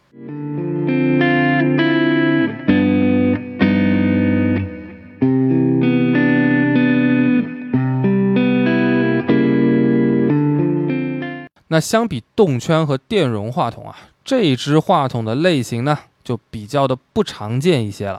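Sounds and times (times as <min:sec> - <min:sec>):
distorted electric guitar playing sustained chords through ribbon microphone: 0:00.0 - 0:11.5
speech: 0:11.8 - 0:18.1.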